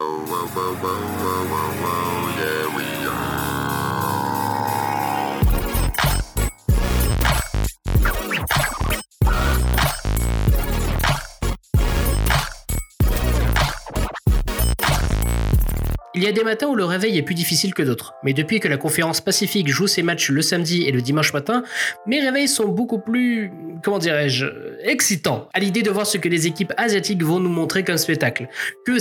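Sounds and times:
podcast opening theme music with synth intro and bass-heavy beats: 0.0s - 16.5s
speech: 0.3s - 3.4s, 16.3s - 28.9s.

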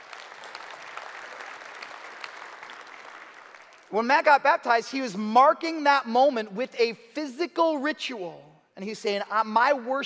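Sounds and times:
audience clapping: 0.0s - 4.0s
speech: 3.9s - 10.0s.

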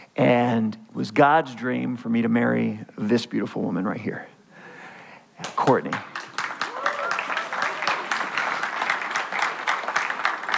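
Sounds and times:
speech: 0.2s - 4.3s, 5.6s - 6.1s
audience clapping: 5.4s - 10.5s.

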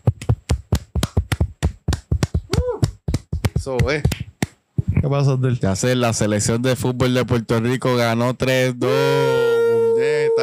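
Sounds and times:
hand claps: 0.0s - 5.0s
person whooping: 2.5s - 3.0s, 8.8s - 10.4s
speech: 3.6s - 4.2s, 5.0s - 9.4s.

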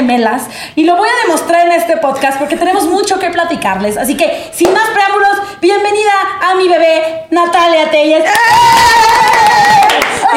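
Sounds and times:
speech: 0.1s - 9.8s
single person clapping rapidly for herself: 8.4s - 10.3s.

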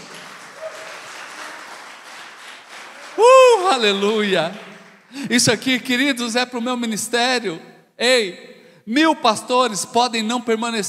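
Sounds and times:
audience applauding: 0.0s - 5.4s
speech: 3.2s - 10.8s.

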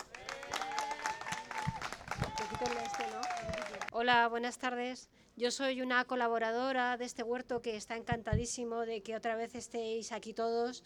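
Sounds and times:
audience applause: 0.0s - 3.9s
speech: 2.6s - 10.8s.

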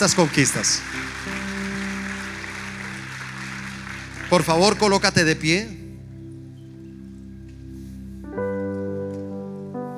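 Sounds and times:
speech: 0.0s - 1.4s, 4.3s - 5.8s
audience applause: 0.0s - 5.6s.

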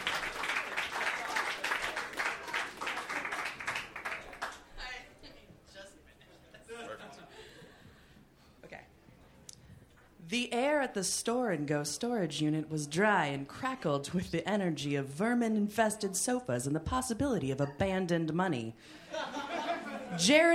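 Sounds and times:
audience applause: 0.0s - 4.6s
laughter: 6.1s - 8.2s, 19.0s - 20.5s
speech: 10.3s - 19.0s, 20.1s - 20.5s.

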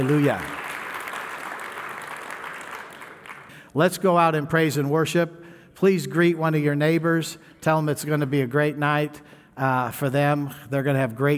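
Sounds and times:
speech: 0.0s - 0.6s, 3.7s - 11.3s
audience hand clapping: 0.0s - 3.7s.

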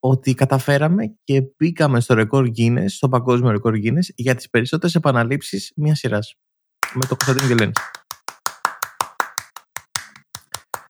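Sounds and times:
speech: 0.0s - 8.0s
applause sound effect played from button: 6.8s - 10.8s.

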